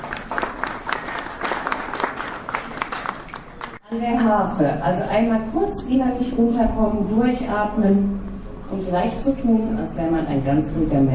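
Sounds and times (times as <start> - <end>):
audience applause: 0.0 - 3.8
speech: 4.0 - 11.1.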